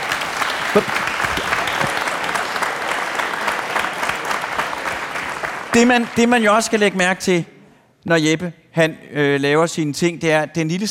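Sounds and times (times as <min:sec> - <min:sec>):
audience applause: 0:00.0 - 0:07.1
speech: 0:00.7 - 0:01.0, 0:05.7 - 0:10.8.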